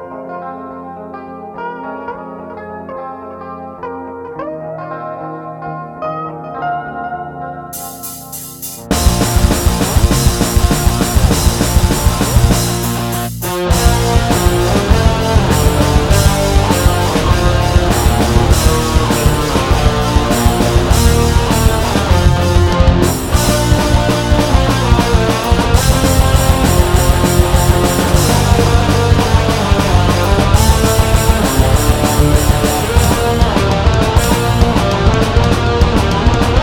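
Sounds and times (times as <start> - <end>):
anthem music: 7.8 - 36.3.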